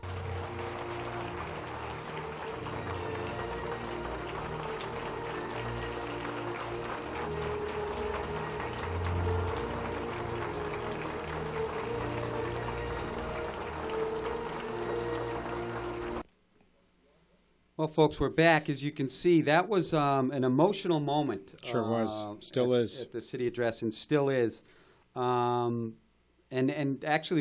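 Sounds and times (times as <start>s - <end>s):
audience standing ovation applause: 0.0s - 16.2s
speech: 17.8s - 27.3s.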